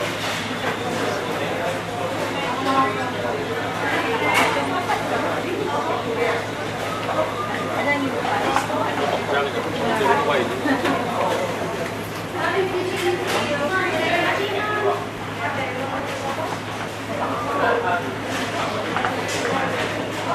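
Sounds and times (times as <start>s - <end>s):
noisy cafe: 0.0s - 20.3s.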